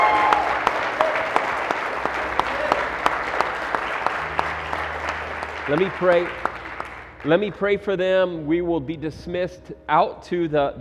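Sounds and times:
audience applause: 0.0 - 7.8
speech: 5.7 - 6.5, 7.2 - 10.7.

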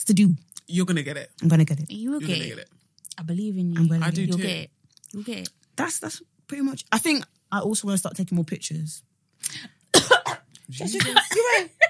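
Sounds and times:
speech: 0.0 - 10.1, 10.7 - 11.8
choking cough after a sharp intake of breath: 9.9 - 11.6.

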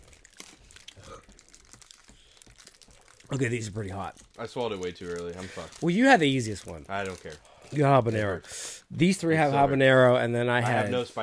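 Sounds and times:
plastic cracker packaging crinkling: 0.0 - 8.4
speech: 3.3 - 11.2.

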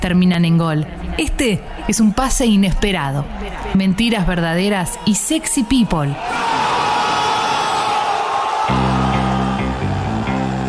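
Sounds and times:
speech: 0.0 - 6.7
audience applause and cheering with whoops: 6.2 - 10.6
sustained low musical tones: 8.7 - 10.6.

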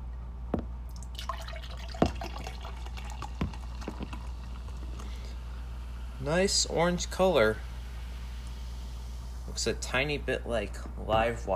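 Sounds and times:
low constant hum: 0.0 - 11.5
soda pouring into a glass with fizzing: 0.9 - 9.2
speech: 6.2 - 7.7, 9.6 - 11.5.

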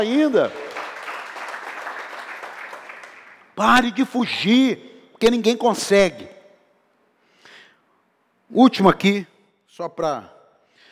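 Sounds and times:
speech: 0.0 - 0.6, 3.6 - 6.4, 8.5 - 10.4
audience applause: 0.0 - 3.6.

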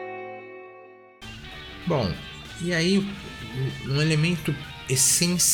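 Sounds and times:
electronic keyboard chords with intense vibrato: 1.2 - 5.5
speech: 2.7 - 3.2, 3.9 - 5.5.

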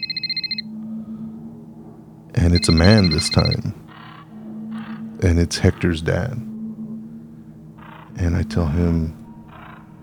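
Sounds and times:
phone ringing: 0.0 - 0.7, 2.6 - 3.6
speech: 2.3 - 3.8, 5.2 - 6.5, 8.2 - 9.2.

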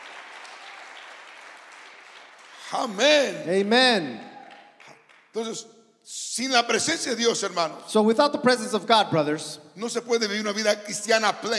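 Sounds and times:
congregation applause in a church service: 0.0 - 5.6
speech: 2.7 - 4.3, 5.3 - 11.5.

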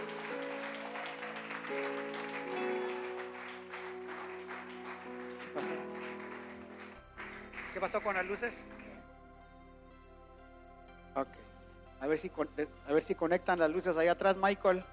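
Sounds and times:
audience clapping: 0.0 - 9.0
speech: 7.8 - 8.9, 12.0 - 14.9.

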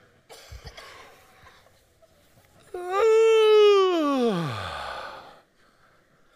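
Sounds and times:
person yawning exaggeratedly: 2.7 - 5.4.

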